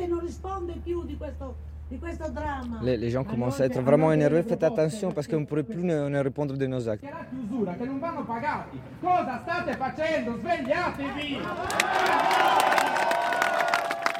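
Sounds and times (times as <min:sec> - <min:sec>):
speech: 0:00.3 - 0:13.1
protest crowd shouting: 0:11.1 - 0:13.8.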